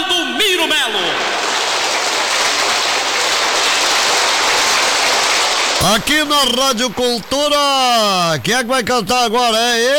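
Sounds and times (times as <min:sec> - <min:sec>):
applause for a performer: 0:00.6 - 0:07.3
speech: 0:05.8 - 0:09.9.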